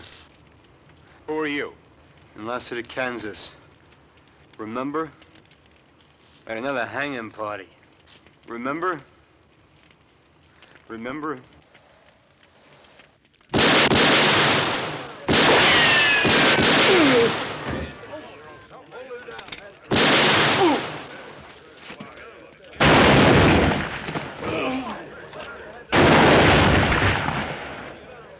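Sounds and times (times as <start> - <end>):
speech: 1.3 - 1.8, 2.4 - 3.6, 4.6 - 5.2, 6.4 - 7.8, 8.5 - 9.1, 10.9 - 11.6
gunfire in a western shootout: 13.5 - 18.1, 19.9 - 21.3, 22.8 - 24.4, 25.4 - 28.0.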